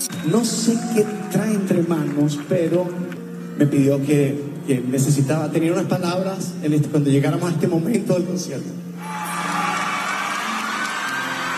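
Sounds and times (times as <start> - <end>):
concert crowd applauding: 0.0 - 3.2, 9.0 - 11.5
speech: 0.2 - 9.2.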